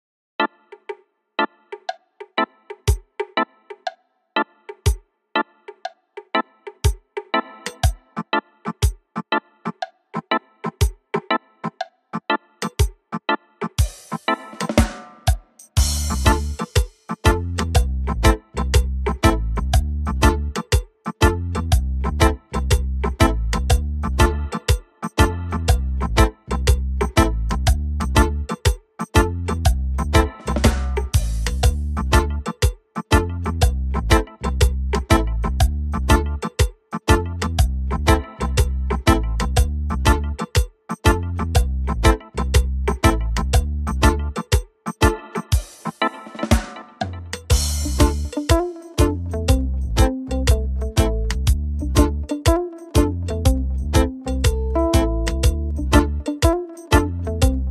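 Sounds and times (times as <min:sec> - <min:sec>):
reggae music: 0:00.4 - 0:57.6.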